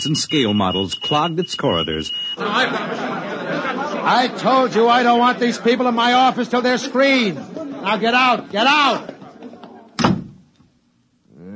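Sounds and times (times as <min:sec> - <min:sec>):
speech: 0:00.0 - 0:09.1
laughter: 0:01.6 - 0:10.0
door slamming shut: 0:10.0 - 0:10.4.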